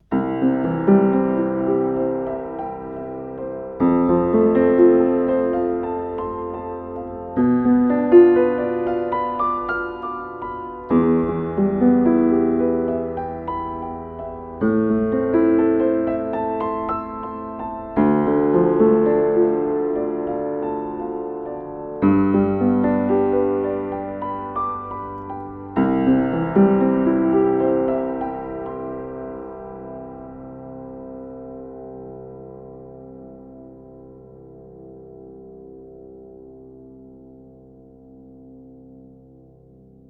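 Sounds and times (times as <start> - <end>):
piano recorded with AKG C414XLS: 0.0 - 40.0.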